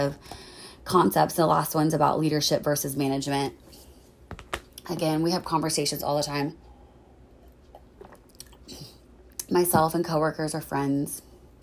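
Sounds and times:
speech: 0.0 - 3.6, 4.9 - 6.6, 9.5 - 11.3
person drinking water: 7.4 - 9.0.

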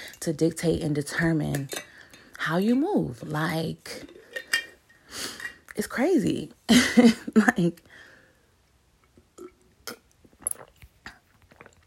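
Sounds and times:
speech: 0.2 - 4.2, 5.8 - 7.9
person sipping tea: 9.4 - 11.8.

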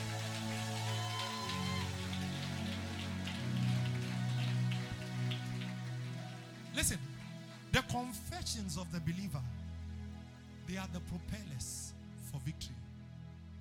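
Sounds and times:
audience applause: 0.0 - 7.6
speech: 6.8 - 7.1, 7.7 - 9.6, 10.7 - 12.9.

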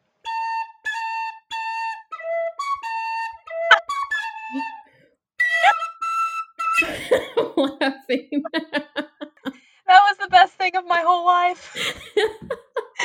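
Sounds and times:
melody played on an Irish whistle: 0.2 - 7.0
laughter: 6.8 - 9.6, 11.7 - 13.0
speech: 7.8 - 8.8, 10.6 - 12.4.

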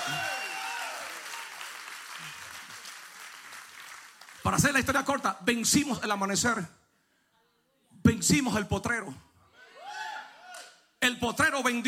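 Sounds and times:
audience applause: 0.0 - 4.4
speech: 4.5 - 6.8, 8.2 - 9.3, 11.2 - 11.8.

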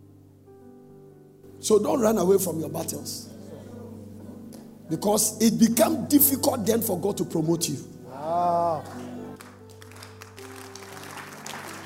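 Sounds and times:
speech: 1.6 - 3.4, 4.9 - 8.0
audience clapping: 8.8 - 11.8.

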